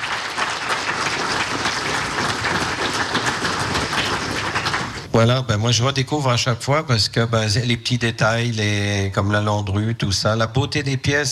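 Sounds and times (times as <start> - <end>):
audience applause: 0.0 - 5.1
speech: 5.2 - 11.3.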